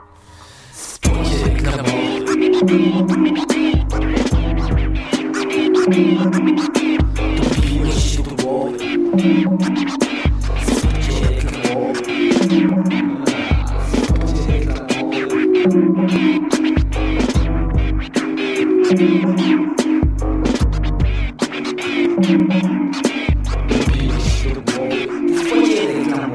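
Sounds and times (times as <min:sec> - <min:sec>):
trip hop beat: 0:01.0 - 0:26.3.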